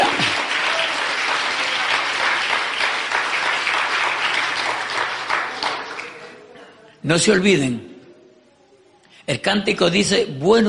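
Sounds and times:
applause: 0.0 - 6.4
speech: 7.0 - 7.9, 9.3 - 10.6.

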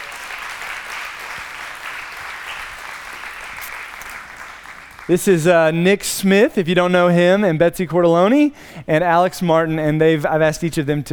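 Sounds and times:
audience applause: 0.0 - 5.1
speech: 5.1 - 11.1.

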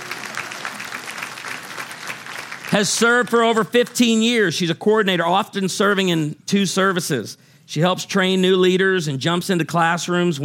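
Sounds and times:
audience applause honoring a longtime volunteer coordinator: 0.0 - 3.2
speech: 2.7 - 10.4.

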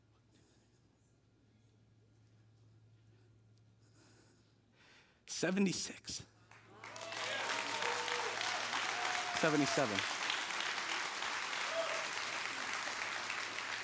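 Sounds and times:
audience clapping: 6.5 - 13.8.

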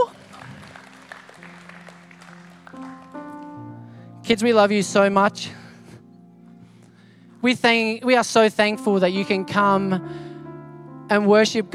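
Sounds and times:
audience clapping and cheering: 0.0 - 3.8
sustained musical tones: 0.0 - 11.7
speech: 4.3 - 5.6, 7.4 - 10.3, 11.1 - 11.7.

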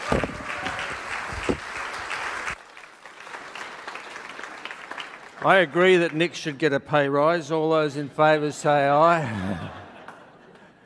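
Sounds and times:
morning church congregation applauding a guest speaker: 0.0 - 6.6
speech: 5.4 - 9.8
laughter: 9.1 - 10.8.

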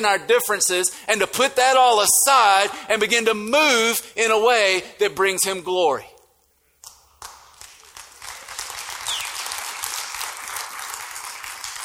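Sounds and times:
speech: 0.0 - 6.1
crowd clapping: 6.8 - 11.8.

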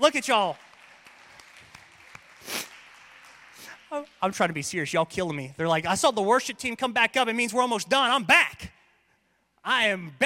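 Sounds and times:
speech: 0.0 - 0.7, 3.9 - 8.8, 9.6 - 10.2
audience clapping: 0.0 - 5.1.

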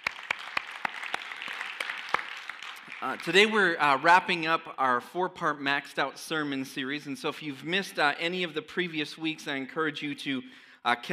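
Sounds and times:
church congregation applauding during a service: 0.0 - 3.8
speech: 3.0 - 11.1.

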